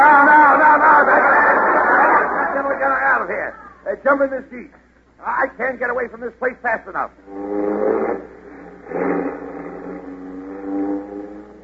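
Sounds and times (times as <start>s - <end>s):
laughter: 0.0s - 3.7s
speech: 3.5s - 8.0s
car engine revving and idling: 7.2s - 11.6s.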